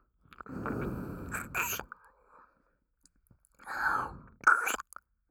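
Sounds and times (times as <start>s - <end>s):
left ear licking ASMR: 0.3s - 1.9s, 3.6s - 4.9s.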